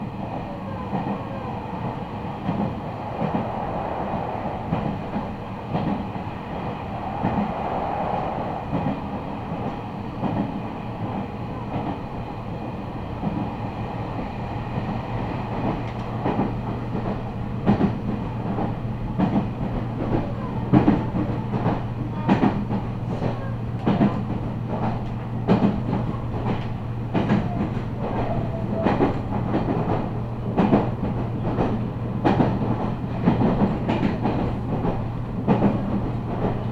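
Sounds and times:
Meitetsu train on the Chita New Line and Kowa Line: 0.0s - 36.6s.

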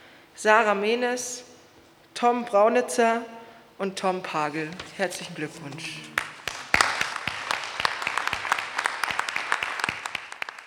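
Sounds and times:
speech: 0.4s - 1.5s, 2.2s - 6.1s
audience applause: 6.1s - 10.6s.

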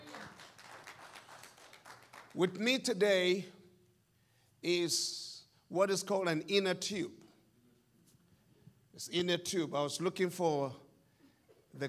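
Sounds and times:
crowd audience clapping: 0.0s - 2.5s
speech: 2.3s - 3.6s, 4.6s - 7.2s, 9.0s - 10.8s.

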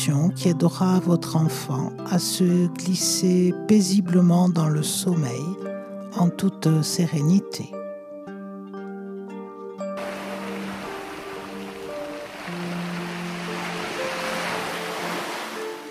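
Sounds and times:
speech: 0.0s - 7.8s
ocean waves: 10.0s - 15.8s.

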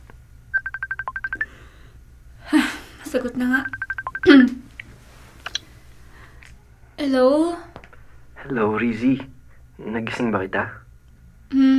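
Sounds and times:
mobile phone ringing with an incoming call: 0.6s - 1.5s, 3.6s - 4.4s
speech: 3.1s - 4.6s, 7.0s - 7.7s, 8.4s - 10.8s.

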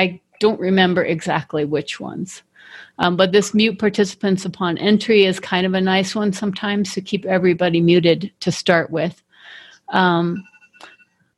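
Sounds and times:
speech: 0.0s - 10.9s
timer alarm with a buzzy electronic tone: 10.3s - 11.1s.

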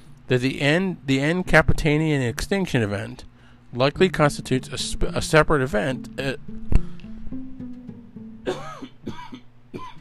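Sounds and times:
speech: 0.3s - 6.6s
person coughing from allergy: 8.5s - 10.0s.

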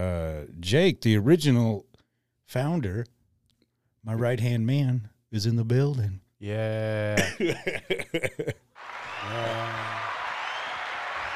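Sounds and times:
speech: 0.6s - 1.9s, 2.5s - 3.2s, 4.0s - 9.8s
live studio audience applause: 8.8s - 11.3s.

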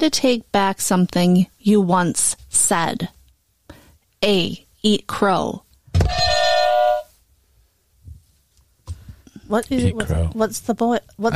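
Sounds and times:
speech: 0.0s - 3.2s, 4.2s - 6.4s, 9.5s - 11.3s
ding-dong quiz buzzer: 6.1s - 7.1s.

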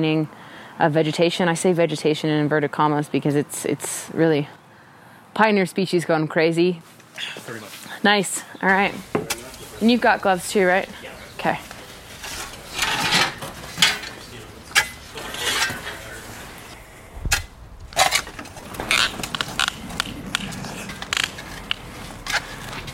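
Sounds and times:
speech: 0.0s - 4.6s, 5.4s - 11.7s
shovel creaking and scraping while digging: 11.0s - 22.9s.

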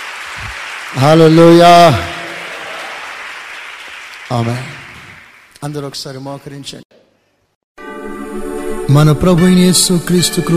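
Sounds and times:
church congregation clapping in praise: 0.0s - 6.1s
speech: 0.4s - 2.1s, 4.3s - 4.8s, 5.6s - 6.8s, 8.9s - 10.5s.

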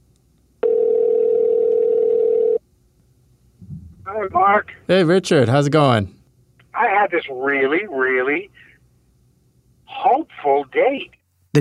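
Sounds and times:
telephone dial tone: 0.6s - 2.6s
faint low rumble: 2.8s - 7.4s
speech: 4.1s - 6.2s, 7.0s - 8.7s, 9.9s - 11.5s.

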